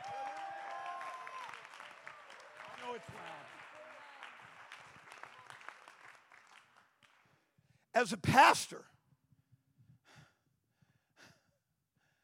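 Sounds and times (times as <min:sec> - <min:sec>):
audience clapping: 0:00.0 - 0:07.4
speech: 0:03.0 - 0:03.6, 0:08.0 - 0:08.9.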